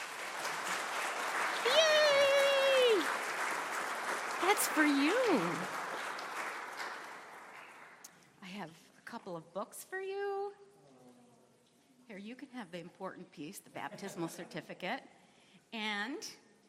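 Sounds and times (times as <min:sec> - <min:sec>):
audience applause: 0:00.0 - 0:08.1
speech: 0:04.6 - 0:05.8, 0:09.2 - 0:10.6, 0:12.1 - 0:16.4.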